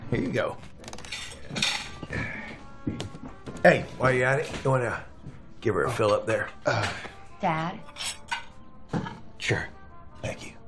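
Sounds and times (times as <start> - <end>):
speech: 0.1 - 0.8, 1.5 - 7.9, 9.5 - 10.5
crockery and cutlery clinking as dishes are washed: 1.0 - 2.2.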